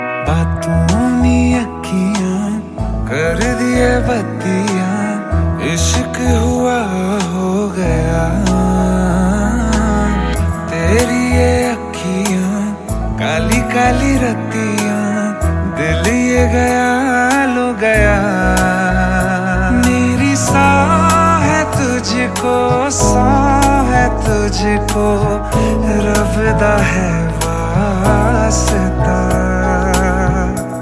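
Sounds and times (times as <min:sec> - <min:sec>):
song: 0:00.0 - 0:30.8.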